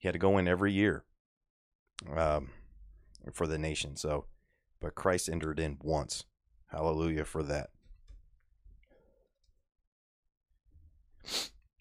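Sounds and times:
speech: 0:00.0 - 0:01.1, 0:02.0 - 0:02.6, 0:03.2 - 0:07.8, 0:11.2 - 0:11.5
sneeze from a head cold: 0:11.3 - 0:11.6.

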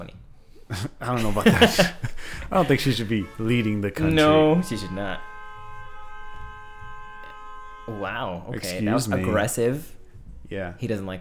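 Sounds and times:
laughter: 0:00.7 - 0:04.3
speech: 0:00.7 - 0:05.3, 0:07.9 - 0:11.1
horn honking: 0:02.4 - 0:10.6.

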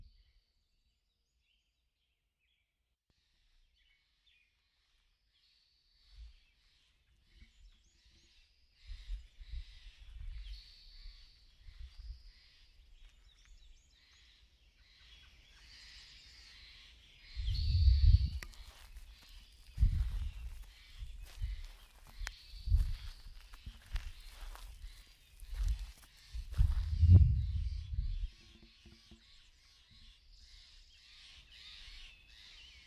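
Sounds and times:
migratory birds singing: 0:02.4 - 0:32.8.

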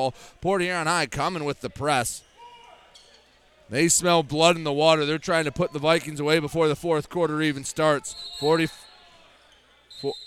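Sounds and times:
speech: 0:00.0 - 0:02.3, 0:03.7 - 0:08.8, 0:10.0 - 0:10.2
referee's whistle at basketball game: 0:08.0 - 0:09.1, 0:09.8 - 0:10.2.

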